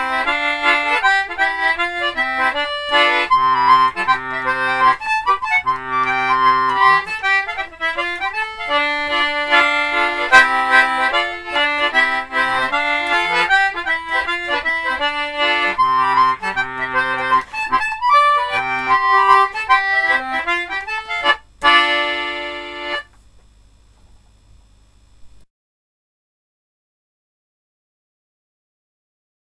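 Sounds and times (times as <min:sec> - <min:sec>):
folk tune on concertina: 0:00.0 - 0:23.2.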